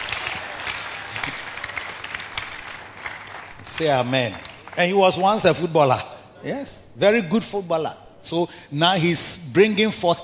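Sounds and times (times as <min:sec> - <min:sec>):
audience clapping: 0:00.0 - 0:05.6
speech: 0:03.8 - 0:10.2.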